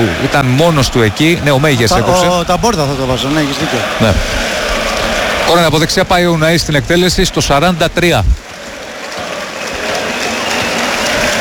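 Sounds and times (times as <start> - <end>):
speech: 0.0 - 4.7, 5.5 - 8.4
large stadium crowd applauding: 0.0 - 11.3.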